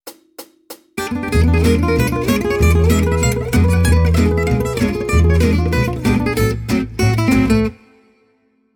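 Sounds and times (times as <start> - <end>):
jazz guitar: 1.0 - 7.9.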